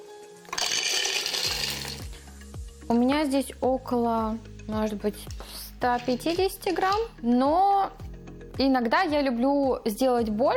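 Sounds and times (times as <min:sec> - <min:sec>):
blender grinding peanuts: 0:00.5 - 0:02.1
speech: 0:02.9 - 0:08.0, 0:08.6 - 0:10.5.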